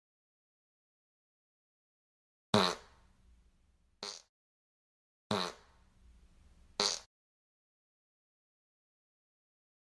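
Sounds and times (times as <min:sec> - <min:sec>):
fart: 0:02.6 - 0:03.0, 0:04.0 - 0:04.3, 0:05.3 - 0:05.8, 0:06.8 - 0:07.1.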